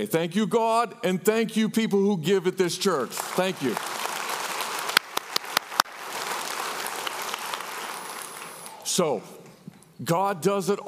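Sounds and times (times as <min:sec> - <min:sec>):
speech: 0:00.0 - 0:04.1, 0:09.0 - 0:10.8
audience clapping: 0:02.9 - 0:09.6.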